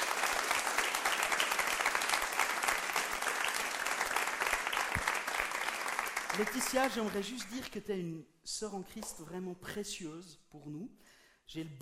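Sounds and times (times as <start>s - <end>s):
audience applauding: 0.0s - 7.4s
speech: 6.4s - 11.8s.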